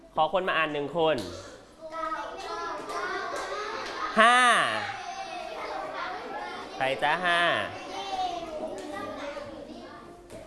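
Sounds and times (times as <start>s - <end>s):
speech: 0.2s - 1.5s, 4.2s - 4.5s, 6.8s - 7.8s
young voices calling out: 1.6s - 10.1s
classroom children clapping: 2.4s - 4.2s.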